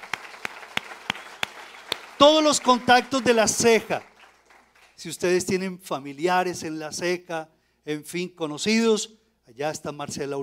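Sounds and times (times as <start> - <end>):
hand claps: 0.0 - 5.0
speech: 2.2 - 4.1, 5.0 - 10.4.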